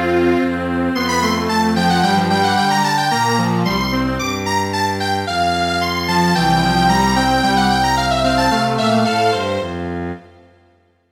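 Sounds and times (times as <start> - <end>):
midi string quartet playing a traditional Scottish piece: 0.0 - 10.4.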